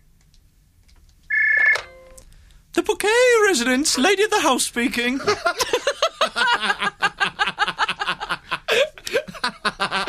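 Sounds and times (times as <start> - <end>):
old-fashioned telephone ringing: 1.3 - 2.2
speech: 2.8 - 5.9
laughter: 5.2 - 10.0.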